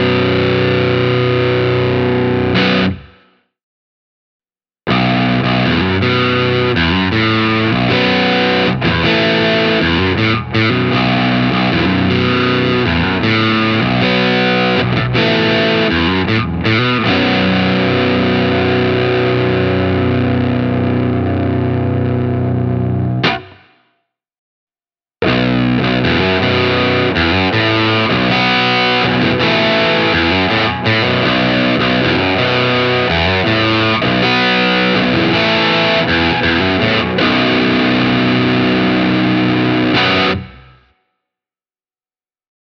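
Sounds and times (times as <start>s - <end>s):
PRS SE Custom 24 electric guitar with overdrive: 0.0s - 3.3s, 4.9s - 23.8s, 25.2s - 41.0s.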